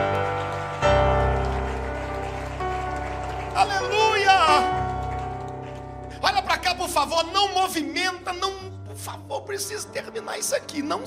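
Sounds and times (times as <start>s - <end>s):
audience applause: 0.0s - 7.6s
speech: 7.0s - 11.0s.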